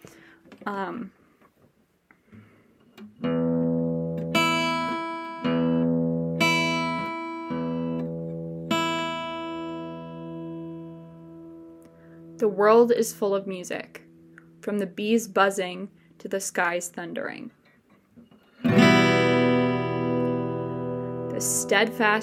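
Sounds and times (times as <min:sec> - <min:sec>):
speech: 0:00.6 - 0:01.2, 0:12.5 - 0:14.0, 0:14.6 - 0:17.6, 0:21.4 - 0:22.2
guitar strings plucked, low E and high E: 0:03.0 - 0:12.5, 0:18.6 - 0:22.2.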